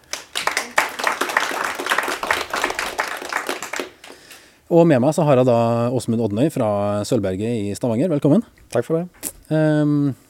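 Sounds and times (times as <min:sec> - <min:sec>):
audience applause: 0:00.0 - 0:04.4
speech: 0:04.7 - 0:10.2.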